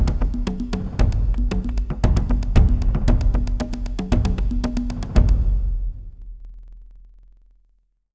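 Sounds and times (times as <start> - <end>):
ambient drums: 0.0 - 7.0.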